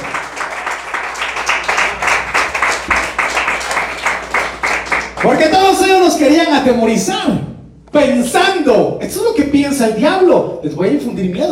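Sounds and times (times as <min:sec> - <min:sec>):
audience clapping: 0:00.0 - 0:05.8
speech: 0:05.2 - 0:11.5.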